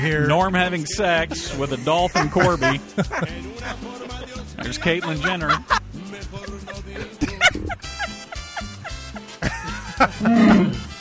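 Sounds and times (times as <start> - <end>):
speech: 0.0 - 4.0, 4.6 - 7.2, 10.0 - 10.8
laughter: 1.2 - 10.9
Wookiee roar sound effect: 10.2 - 10.9.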